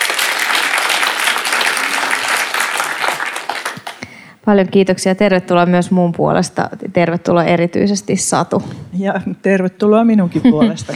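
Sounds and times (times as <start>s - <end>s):
audience applause: 0.0s - 4.1s
speech: 4.5s - 10.9s.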